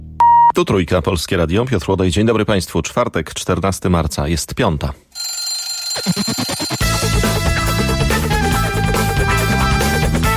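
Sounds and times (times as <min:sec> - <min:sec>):
speech: 0:00.6 - 0:05.0, 0:06.0 - 0:06.4
alarm clock ringing in metallic pulses: 0:05.2 - 0:07.6
loud bright music: 0:06.8 - 0:10.3.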